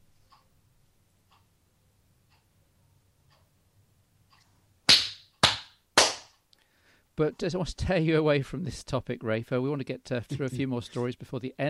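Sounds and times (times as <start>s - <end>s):
sharp hand claps as an editing marker: 4.9s - 6.4s
speech: 7.2s - 11.6s.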